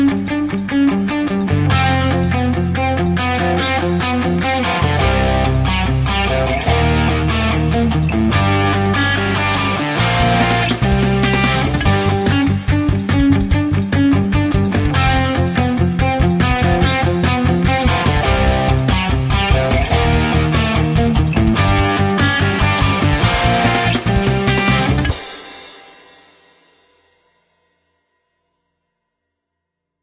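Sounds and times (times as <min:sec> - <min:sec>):
rock guitar riffs: 0:00.0 - 0:26.0.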